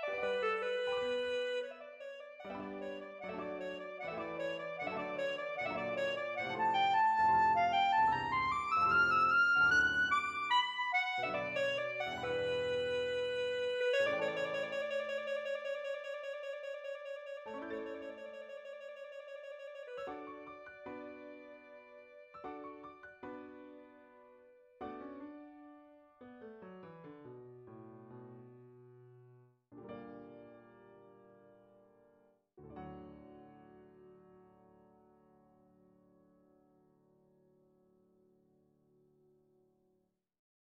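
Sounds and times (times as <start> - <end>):
E-flat clarinet: 0.0 - 22.3.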